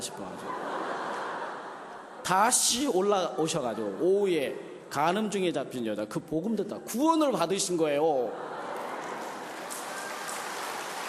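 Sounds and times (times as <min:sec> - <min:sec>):
laughter: 0:00.0 - 0:04.6, 0:08.0 - 0:10.6
speech: 0:02.3 - 0:08.5
crowd clapping: 0:08.7 - 0:11.0.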